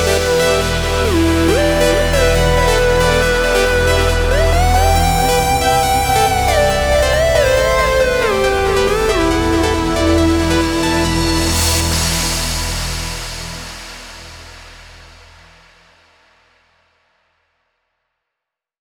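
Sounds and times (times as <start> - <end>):
complete music mix in E minor: 0.0 - 13.8.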